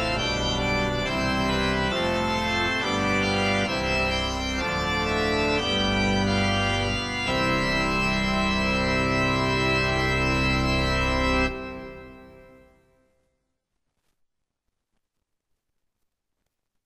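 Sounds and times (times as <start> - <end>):
hymn: 0.0 - 12.6.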